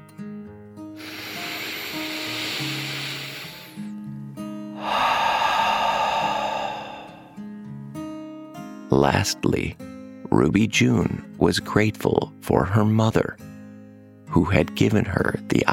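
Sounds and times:
deep breath in and out in bed during a guided meditation: 1.0s - 3.9s, 4.7s - 7.6s
speech: 8.9s - 13.4s, 14.3s - 15.7s.

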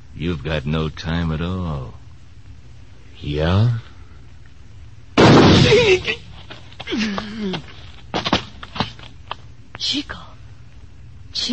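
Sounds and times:
speech: 0.2s - 2.0s, 3.2s - 3.9s, 5.7s - 6.2s, 6.9s - 7.7s, 9.8s - 10.3s, 11.4s - 11.5s
gunshot in a western film: 5.2s - 6.1s.

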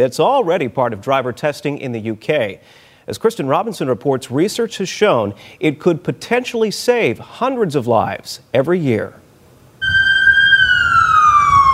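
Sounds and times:
speech: 0.0s - 9.2s
emergency vehicle siren wailing: 9.8s - 11.7s.

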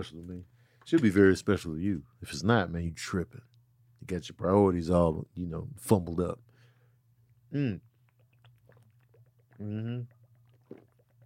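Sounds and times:
speech: 0.0s - 6.5s, 7.5s - 7.9s, 9.6s - 10.2s
low steady hum: 0.0s - 11.2s
water bottle gurgling while someone drinks: 8.0s - 11.2s.

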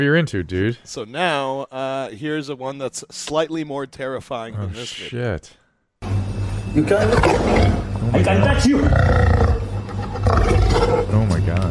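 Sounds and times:
speech: 0.0s - 9.4s
big cat roaring: 7.0s - 7.9s, 8.6s - 11.1s.

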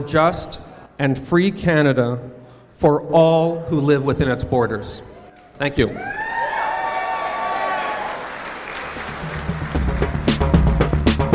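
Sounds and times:
speech: 0.0s - 6.3s
audience applause: 6.0s - 11.2s.

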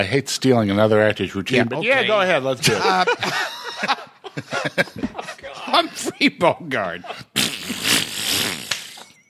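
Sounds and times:
speech: 0.0s - 5.1s, 5.7s - 7.3s
laughter: 1.9s - 7.4s
person blowing a raspberry imitating a fart: 7.2s - 9.2s.

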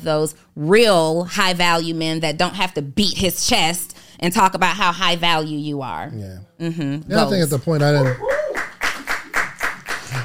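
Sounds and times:
speech: 0.0s - 8.4s
clapping: 7.8s - 10.2s.

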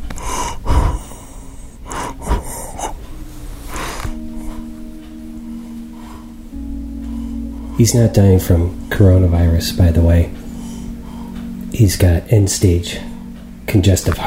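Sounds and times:
steady low hum: 0.0s - 14.2s
dying 94-year-old man gasping breaths at nursing-home bedside: 0.1s - 3.1s
speech: 7.8s - 10.4s, 11.8s - 13.1s, 13.7s - 14.2s.

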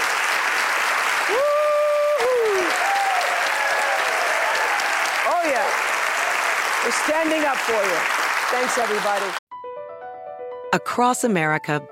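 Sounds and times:
studio audience applause: 0.0s - 9.4s
speech: 1.3s - 1.5s, 6.8s - 9.4s, 10.7s - 11.9s.

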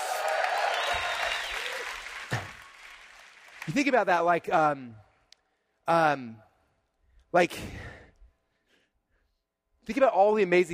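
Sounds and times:
round of applause: 0.0s - 4.3s
speech: 3.7s - 5.1s, 5.9s - 6.5s, 7.3s - 7.9s, 9.9s - 10.7s.

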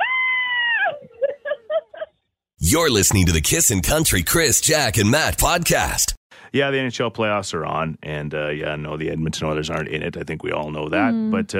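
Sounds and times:
caller screaming over the phone: 0.0s - 1.0s
speech: 2.7s - 11.5s.

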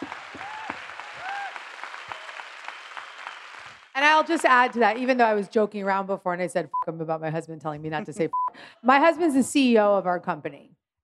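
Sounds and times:
audience whoops and cheers: 0.0s - 3.4s
audience applause: 0.0s - 5.0s
speech: 4.0s - 11.0s.

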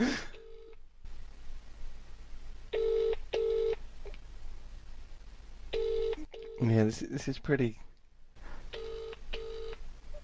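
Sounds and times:
low hum: 0.0s - 10.2s
phone call ringback tones ringing out unanswered: 2.8s - 3.8s, 5.8s - 6.6s, 8.8s - 9.8s
speech: 6.6s - 7.9s.

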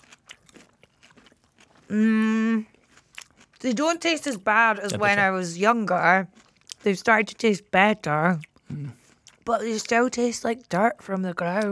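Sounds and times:
crunchy chewing of raw radishes: 0.0s - 5.3s, 6.3s - 7.0s, 8.4s - 10.0s
speech: 1.9s - 2.2s, 3.6s - 11.7s.

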